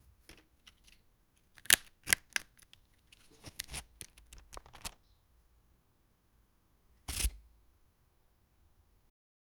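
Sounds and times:
object handling: 0.2 - 5.0.

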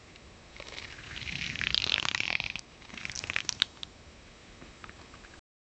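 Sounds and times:
large dinosaur stretching: 0.6 - 3.7.

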